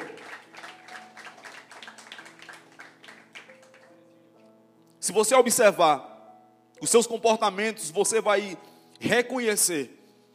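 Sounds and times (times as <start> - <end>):
audience applause: 0.0 - 4.0
speech: 5.1 - 6.1, 6.8 - 10.0.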